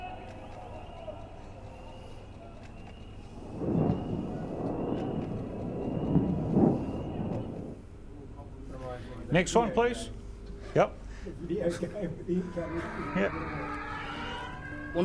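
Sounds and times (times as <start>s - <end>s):
Iron Dome interceptor missiles exploding rockets midair: 3.4s - 7.9s
speech: 9.3s - 10.2s, 10.8s - 13.8s.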